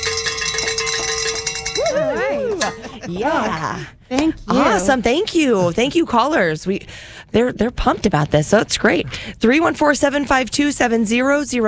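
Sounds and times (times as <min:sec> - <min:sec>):
celebratory bells ringing: 0:00.0 - 0:03.1
people whooping and cheering: 0:01.6 - 0:03.8
laughter: 0:01.8 - 0:03.9, 0:04.5 - 0:06.2
speech: 0:01.9 - 0:11.6.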